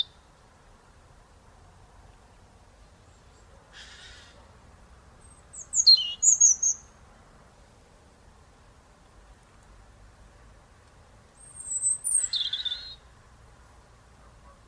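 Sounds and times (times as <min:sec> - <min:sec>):
European robin Erithacus rubecula twittering: 0:00.0 - 0:00.2, 0:05.2 - 0:06.9, 0:11.4 - 0:13.0.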